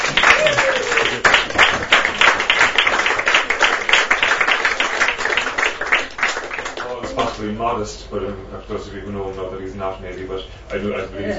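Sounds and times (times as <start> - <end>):
round of applause: 0.0 - 7.4
speech: 7.4 - 11.3.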